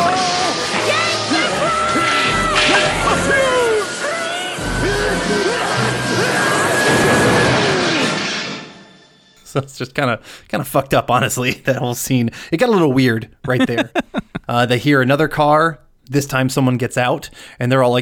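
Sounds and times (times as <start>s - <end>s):
excited yells and shrieks: 0.0s - 8.2s
cartoon explosion of an overloaded air conditioner: 0.0s - 9.1s
speech: 9.6s - 18.0s
laughter: 13.5s - 14.5s.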